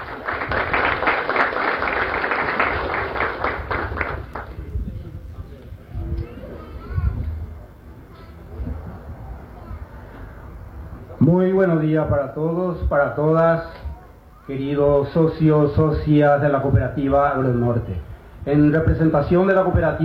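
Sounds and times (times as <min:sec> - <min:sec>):
audience applause: 0:00.0 - 0:04.7
murmur of voices: 0:02.3 - 0:20.0
speech: 0:11.3 - 0:13.8, 0:14.5 - 0:20.0.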